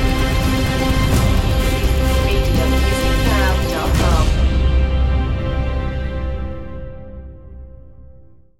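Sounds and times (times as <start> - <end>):
background choir singing: 0.0 - 5.4.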